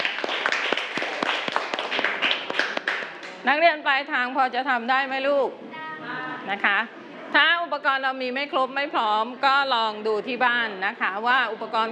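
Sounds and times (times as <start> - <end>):
children clapping hands: 0.0 - 3.4
speech: 3.4 - 5.7, 6.4 - 11.9.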